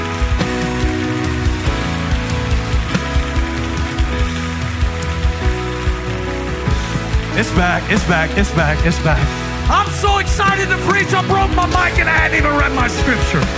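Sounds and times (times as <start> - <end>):
audience clapping hands along: 0.0 - 13.5
loud steady music with strong low notes: 0.0 - 13.5
speech: 7.4 - 13.5.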